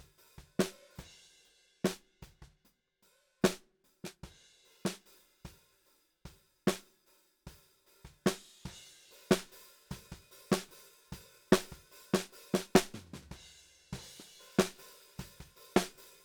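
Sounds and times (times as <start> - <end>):
snare drum: 0.0 - 1.1, 3.4 - 4.2, 8.1 - 10.8, 11.5 - 16.2.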